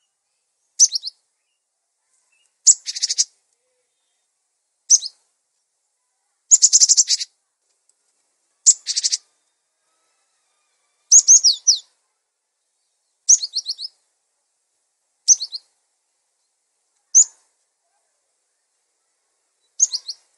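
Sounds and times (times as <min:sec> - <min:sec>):
songbird twittering: 0:00.7 - 0:01.6, 0:02.4 - 0:03.4, 0:04.8 - 0:05.2, 0:06.5 - 0:07.3, 0:08.6 - 0:09.3, 0:11.1 - 0:11.9, 0:12.8 - 0:14.0, 0:15.3 - 0:15.7, 0:16.4 - 0:17.4, 0:19.6 - 0:20.3.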